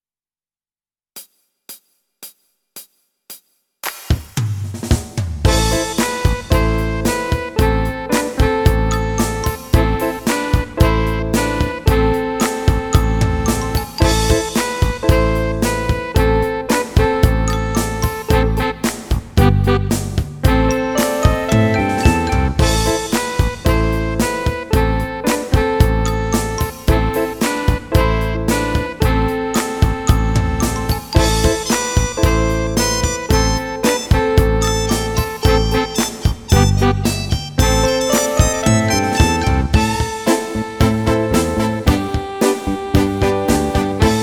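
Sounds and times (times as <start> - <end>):
blues jam in F sharp: 5.1 - 44.2.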